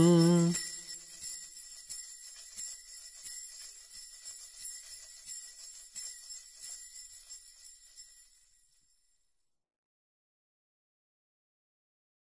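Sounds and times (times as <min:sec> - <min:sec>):
Romanian Christmas carols: 0:00.0 - 0:00.8.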